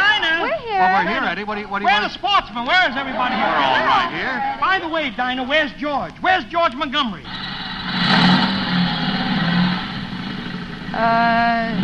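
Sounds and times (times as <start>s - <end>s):
speech: 0.8s - 8.1s, 10.9s - 11.8s
motorcycle engine revving: 7.2s - 11.8s.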